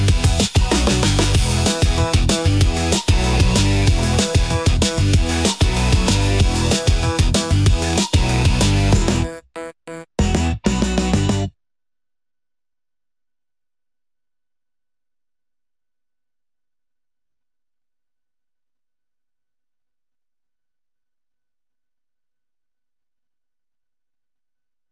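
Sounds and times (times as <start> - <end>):
synthesizer: 0.0 - 11.5.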